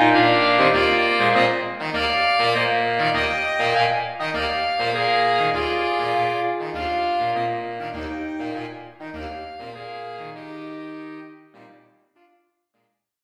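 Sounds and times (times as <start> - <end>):
saxophone quartet playing: 0.0 - 12.3.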